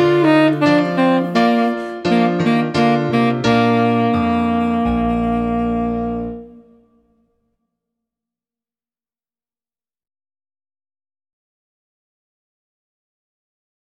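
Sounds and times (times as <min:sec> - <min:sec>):
tenor saxophone playing a minuet: 0:00.0 - 0:07.3.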